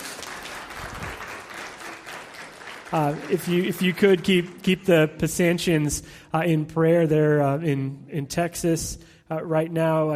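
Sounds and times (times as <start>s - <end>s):
audience applause: 0.0s - 4.6s
speech: 2.9s - 10.1s.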